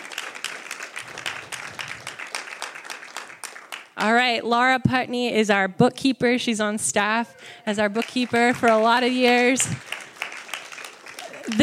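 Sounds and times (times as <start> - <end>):
audience applauding: 0.0 - 4.0, 7.8 - 11.6
speech: 4.0 - 9.9.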